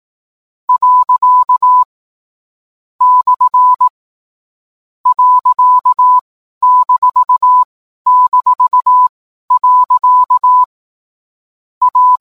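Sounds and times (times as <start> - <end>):
Morse code tones: 0.7 - 1.9, 3.0 - 3.9, 5.1 - 10.7, 11.8 - 12.1.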